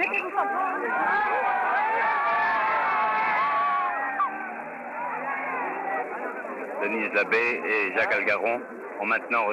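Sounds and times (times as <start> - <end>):
crowd booing: 0.0 - 6.7
speech: 6.8 - 9.5.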